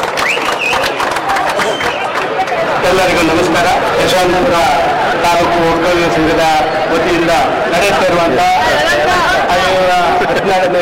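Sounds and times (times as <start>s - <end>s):
clapping and crowd noise at a Kempegowda Jayanti community event: 0.0s - 4.7s
speech: 2.9s - 10.8s.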